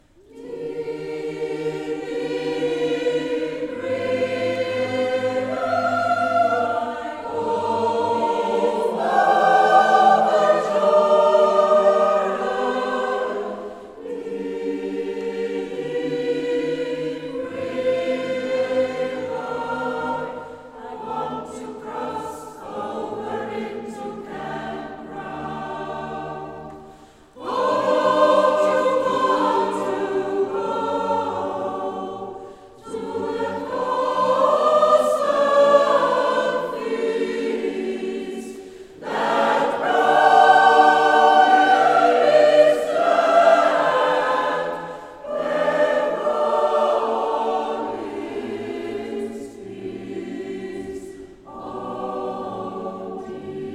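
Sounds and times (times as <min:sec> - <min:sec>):
gospel choir singing: 0:00.0 - 0:53.7.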